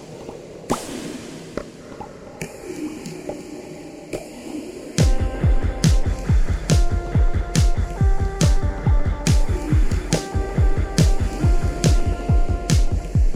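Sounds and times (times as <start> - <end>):
dubstep music: 5.0 - 13.3.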